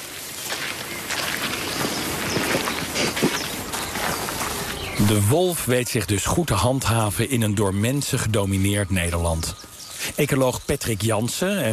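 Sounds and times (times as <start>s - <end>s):
soft crunching footsteps of people walking along a path in the Netherlands: 0.0s - 5.2s
steady hiss of outdoor noise: 0.0s - 11.7s
speech: 5.0s - 9.6s, 10.2s - 11.7s.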